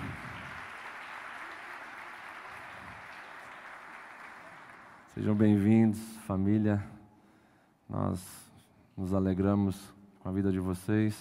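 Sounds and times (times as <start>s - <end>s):
audience applause: 0.0s - 5.1s
speech: 5.2s - 7.0s, 7.9s - 8.4s, 9.0s - 11.2s.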